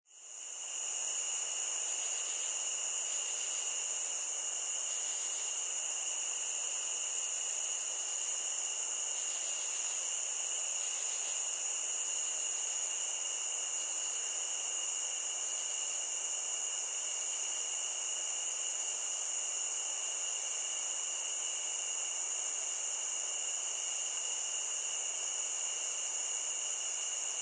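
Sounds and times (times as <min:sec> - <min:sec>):
cricket chorus trilling: 0:00.1 - 0:27.3
hiss: 0:00.1 - 0:27.3.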